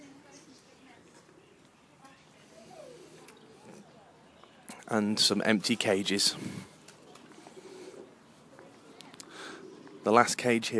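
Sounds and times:
dove cooing in aviary: 0:02.5 - 0:04.0, 0:06.3 - 0:10.5
speech: 0:04.9 - 0:06.6, 0:10.1 - 0:10.7.

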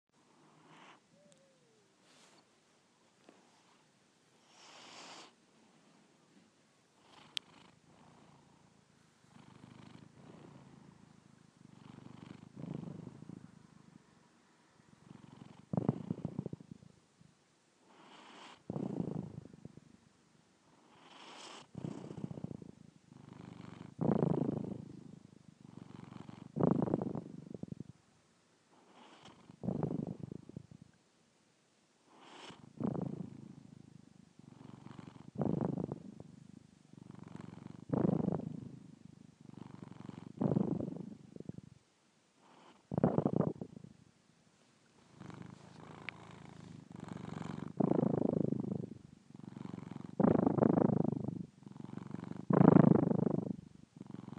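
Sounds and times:
purring: 0:00.3 - 0:02.4, 0:03.2 - 0:05.4, 0:07.0 - 0:14.0, 0:14.8 - 0:17.0, 0:17.8 - 0:20.0, 0:20.6 - 0:28.0, 0:28.7 - 0:31.0, 0:32.0 - 0:41.8, 0:42.4 - 0:44.0, 0:44.9 - 0:54.3
snoring: 0:00.3 - 0:02.4, 0:04.4 - 0:05.4, 0:07.0 - 0:13.5, 0:15.0 - 0:16.9, 0:17.8 - 0:19.7, 0:20.7 - 0:27.9, 0:28.7 - 0:30.8, 0:32.1 - 0:33.8, 0:34.4 - 0:41.6, 0:42.4 - 0:43.9, 0:45.0 - 0:54.3.

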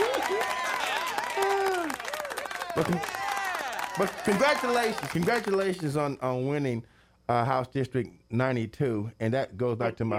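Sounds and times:
canned applause and crowd cheering from a sound-effect button: 0:00.0 - 0:06.1
speech: 0:02.8 - 0:03.2, 0:04.0 - 0:10.1.

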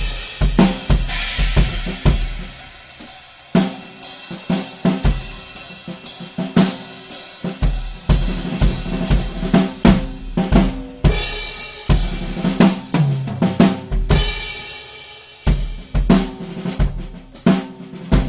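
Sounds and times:
drums recorded binaurally with Roland CS 10 EM mics: 0:00.0 - 0:18.2.

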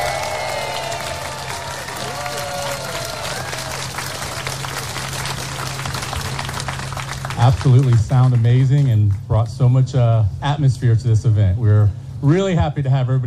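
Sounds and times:
audience applause: 0:00.0 - 0:09.4
speech: 0:07.4 - 0:13.2.

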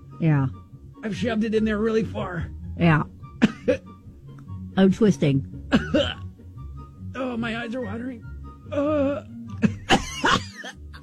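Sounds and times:
speech: 0:00.2 - 0:03.9, 0:04.8 - 0:06.2, 0:07.4 - 0:09.3
person coughing: 0:03.4 - 0:03.8, 0:05.7 - 0:06.3, 0:09.0 - 0:11.0
throaty vocal sound: 0:08.7 - 0:09.7.

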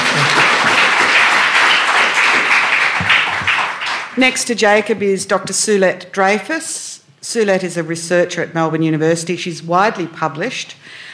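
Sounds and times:
crowd applauding: 0:00.0 - 0:04.2
speech: 0:04.2 - 0:11.0.

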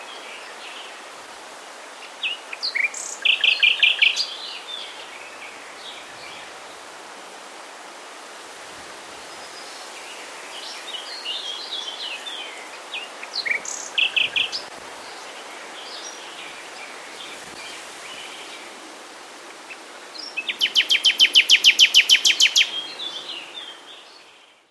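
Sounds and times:
nightingale singing: 0:02.2 - 0:06.5, 0:10.6 - 0:16.9, 0:19.7 - 0:24.6.

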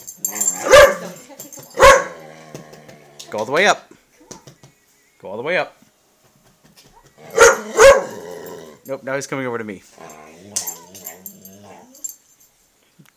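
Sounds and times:
dog barking: 0:00.6 - 0:01.2, 0:01.8 - 0:02.2, 0:07.0 - 0:08.2
speech: 0:03.3 - 0:03.9, 0:05.2 - 0:05.8, 0:08.9 - 0:10.6.

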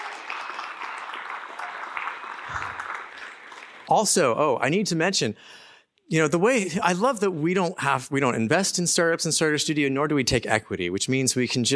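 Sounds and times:
steady audience applause: 0:00.0 - 0:04.1
speech: 0:03.9 - 0:11.7.

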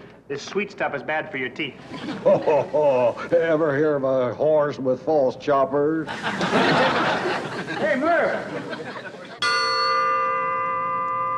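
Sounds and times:
speech: 0:00.3 - 0:09.0
laughter: 0:01.8 - 0:03.8, 0:06.0 - 0:09.4
triangle or small bell ding: 0:09.4 - 0:11.3.

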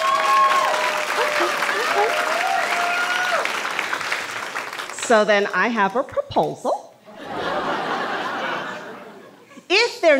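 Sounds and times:
faint whoops and voices: 0:00.0 - 0:03.5
crowd applauding: 0:00.0 - 0:05.1
laughter: 0:01.0 - 0:02.4, 0:07.1 - 0:09.6
speech: 0:05.1 - 0:06.8.

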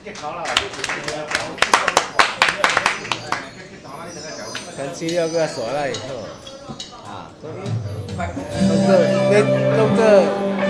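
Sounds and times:
speech: 0:00.0 - 0:10.6
applause: 0:00.1 - 0:03.5.

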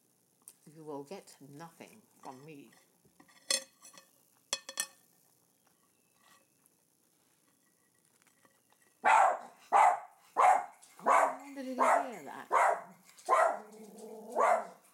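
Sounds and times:
speech: 0:00.7 - 0:02.9
dishes or cutlery clinking and clattering: 0:03.2 - 0:05.1
dog barking: 0:09.0 - 0:14.8.

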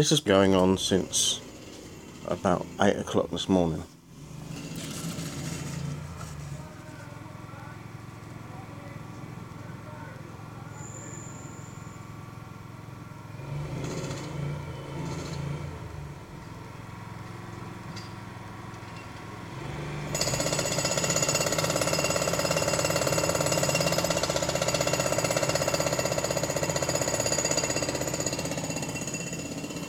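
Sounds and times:
speech: 0:00.0 - 0:01.5, 0:02.3 - 0:03.9
rotary masonry saw grinding at full power: 0:00.0 - 0:07.0, 0:13.4 - 0:29.8
construction machinery rumbling: 0:00.0 - 0:29.8.

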